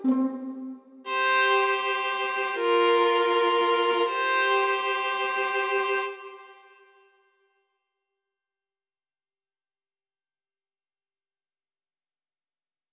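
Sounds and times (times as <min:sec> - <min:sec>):
viola soliloquy: 0:00.0 - 0:07.0.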